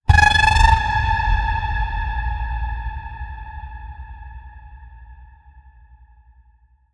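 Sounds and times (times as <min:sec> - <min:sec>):
ghostly pitch bend: 0:00.0 - 0:04.8.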